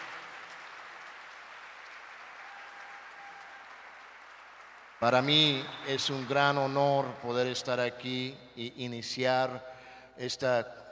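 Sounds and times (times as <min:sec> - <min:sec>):
audience applause: 0:00.0 - 0:06.8
speech: 0:05.0 - 0:10.8.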